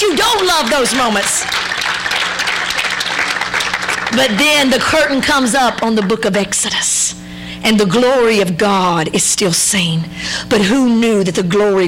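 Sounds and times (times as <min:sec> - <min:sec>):
speech: 0:00.0 - 0:01.8, 0:04.1 - 0:11.8
audience clapping in praise: 0:00.0 - 0:06.4.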